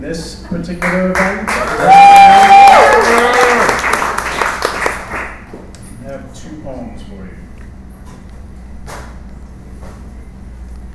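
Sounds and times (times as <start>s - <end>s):
speech: 0.0s - 3.5s
audience applause: 0.8s - 5.4s.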